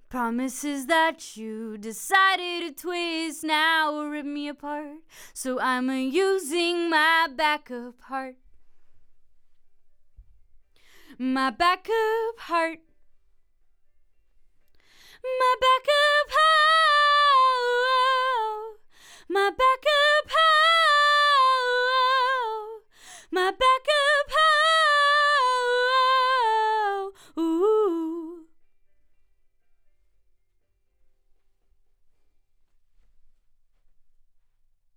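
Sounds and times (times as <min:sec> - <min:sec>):
vocals: 0:00.0 - 0:08.6, 0:10.8 - 0:13.0, 0:14.7 - 0:29.9.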